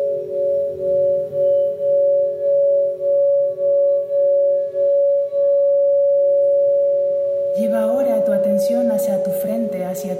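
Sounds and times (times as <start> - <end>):
Tibetan singing bowl ringing: 0.0 - 10.1.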